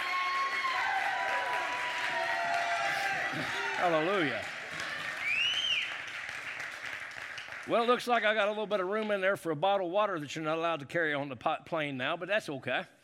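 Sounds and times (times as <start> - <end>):
audience clapping hands in praise: 0.0 - 8.4
speech: 3.4 - 4.5, 7.7 - 13.0.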